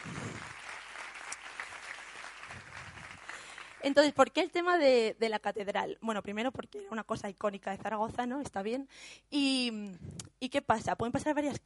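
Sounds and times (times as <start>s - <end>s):
crowd applause: 0.0s - 3.8s
speech: 3.8s - 11.6s.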